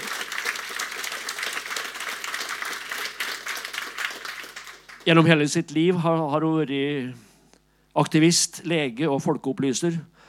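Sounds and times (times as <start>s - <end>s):
audience applause: 0.0s - 5.4s
speech: 5.0s - 7.3s, 8.0s - 10.2s.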